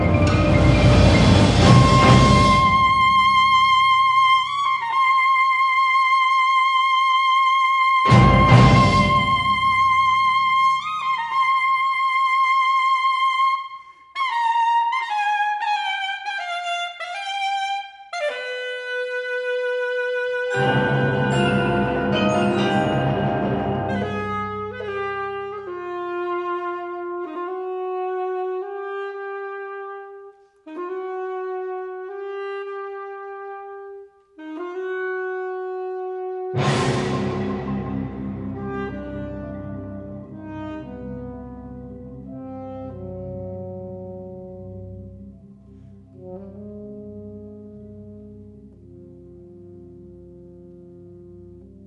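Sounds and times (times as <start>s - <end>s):
saxophone: 0.2s - 51.8s.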